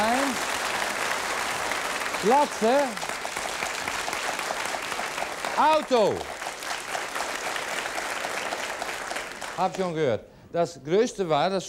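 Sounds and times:
audience applause: 0.0 - 10.0
speech: 2.2 - 3.0, 5.6 - 6.3, 9.6 - 11.6.

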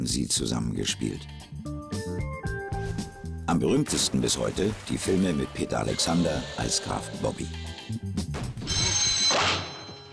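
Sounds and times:
speech: 0.0 - 2.4, 3.5 - 8.1
telephone ringing: 8.7 - 10.1.

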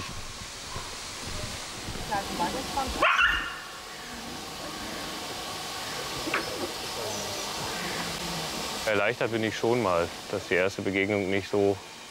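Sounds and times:
steady noise: 0.0 - 12.0
speech: 2.1 - 3.3, 8.9 - 11.9
young wolves yelping and barking: 3.0 - 3.8.

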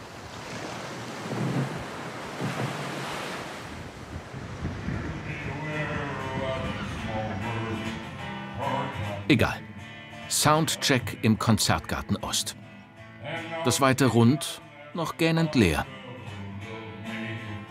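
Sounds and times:
surf washing: 0.0 - 8.3
wind gusts across an open coastline: 0.0 - 8.4
speech: 9.3 - 9.6, 10.3 - 12.6, 13.6 - 16.0.

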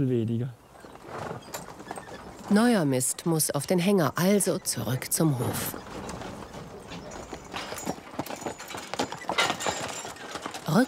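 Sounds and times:
speech: 0.0 - 0.6, 2.5 - 5.9
horse hooves clip-clopping: 0.6 - 10.8.

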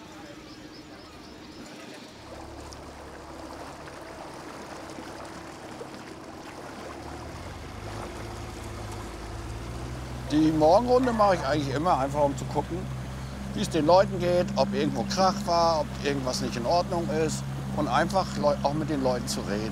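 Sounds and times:
inflatable boat motor droning on harbour water: 0.0 - 19.7
splashing rushing harbour water: 1.5 - 19.7
speech: 10.3 - 19.7.

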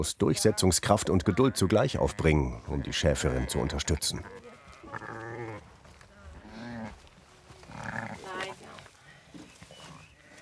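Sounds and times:
speech: 0.0 - 4.5
lamb bleating: 0.4 - 5.6, 7.7 - 8.5.

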